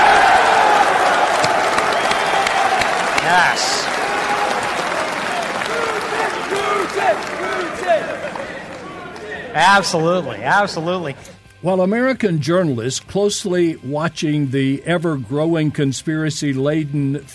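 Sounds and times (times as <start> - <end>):
people shouting: 0.0 - 10.0
crowd applause: 0.0 - 10.4
speech: 9.7 - 17.3.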